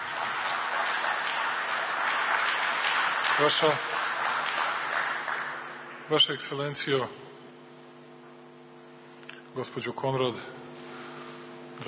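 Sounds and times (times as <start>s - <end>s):
applause for the Serbian president at a formal ceremony: 0.0s - 6.7s
speech: 3.4s - 4.0s, 6.1s - 7.2s, 9.6s - 10.6s.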